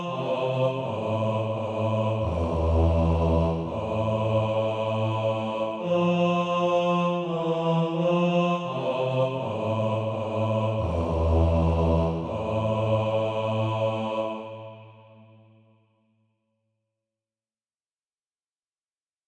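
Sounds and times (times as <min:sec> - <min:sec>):
bass voice singing SATB practice music: 0:00.0 - 0:06.4, 0:07.3 - 0:14.1.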